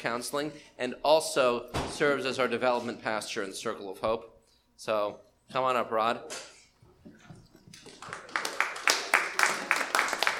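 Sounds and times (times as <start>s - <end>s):
speech: 0.0s - 6.5s
audience applause: 7.7s - 10.3s.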